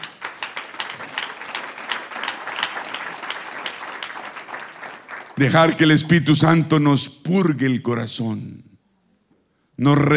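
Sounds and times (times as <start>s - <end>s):
crowd applause: 0.0s - 5.9s
speech: 5.4s - 8.7s, 9.8s - 10.1s.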